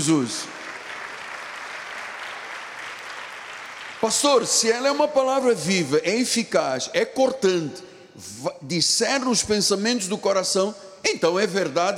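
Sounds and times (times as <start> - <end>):
speech: 0.0 - 0.6, 4.0 - 11.9
audience applause: 0.5 - 4.2.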